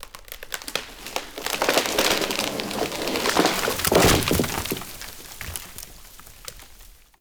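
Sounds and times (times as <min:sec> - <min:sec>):
tree falling in a forest: 0:00.0 - 0:07.1.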